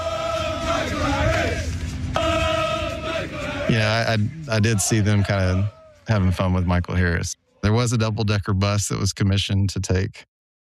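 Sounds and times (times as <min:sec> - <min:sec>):
England World Cup fans chanting at Truist Park baseball game: 0:00.0 - 0:08.4
speech: 0:03.7 - 0:10.3.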